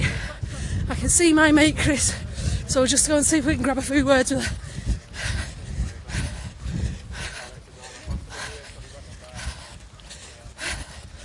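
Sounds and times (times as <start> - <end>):
speech: 0.9 - 4.6
heavy rapid breathing after a run: 2.0 - 2.7, 4.3 - 11.2.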